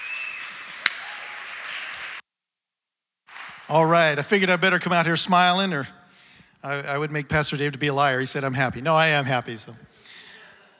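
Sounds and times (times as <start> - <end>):
church congregation applauding to welcome a pastor: 0.0 - 2.2, 3.3 - 4.2
speech: 3.7 - 6.0, 6.6 - 10.1.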